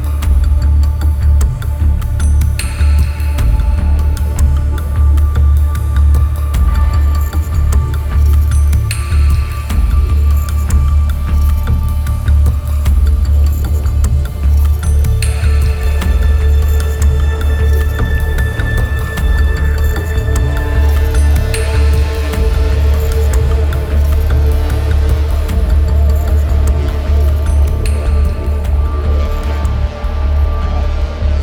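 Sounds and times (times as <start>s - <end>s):
ambient suspense music: 0.0s - 31.4s.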